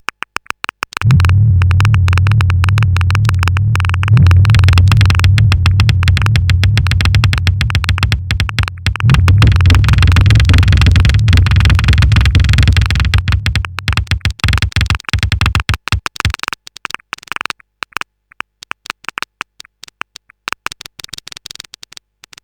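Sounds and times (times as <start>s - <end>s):
noise beats mix: 1.0s - 16.4s.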